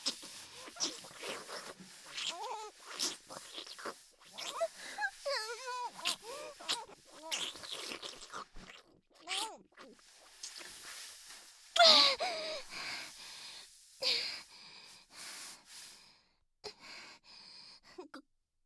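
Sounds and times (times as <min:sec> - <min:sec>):
deep kissing: 0:00.0 - 0:14.4.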